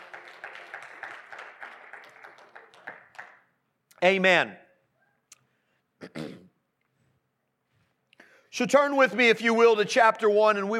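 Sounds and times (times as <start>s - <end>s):
audience clapping hands: 0.0s - 3.7s
speech: 4.0s - 4.6s, 8.6s - 10.7s.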